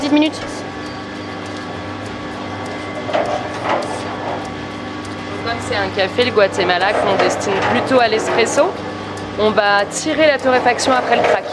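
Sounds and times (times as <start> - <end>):
speech: 0.0 - 0.6, 5.6 - 11.5
mixer running for coffee roaster cooler: 0.0 - 11.5.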